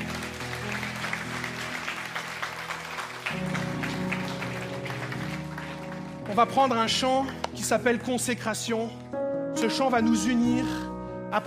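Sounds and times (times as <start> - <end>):
audience clapping: 0.0 - 7.8
speech: 6.4 - 11.4.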